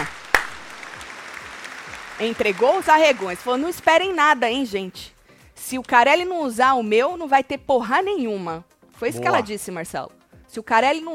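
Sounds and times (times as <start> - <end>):
audience applause: 0.0 - 4.2
speech: 2.2 - 11.1.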